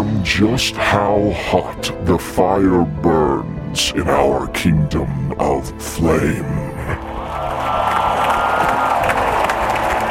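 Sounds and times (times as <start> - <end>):
speech: 0.3 - 6.6
crowd cheering: 6.9 - 10.0.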